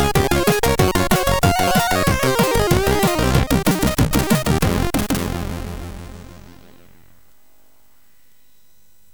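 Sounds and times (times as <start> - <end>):
chiptune groove on a MOS6581R3 SID chip: 0.0 - 7.2.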